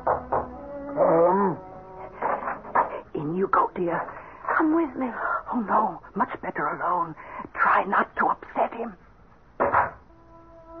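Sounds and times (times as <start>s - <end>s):
faint ringing hum: 0.0s - 10.7s
speech: 3.5s - 9.0s
door thudding shut: 9.6s - 10.0s.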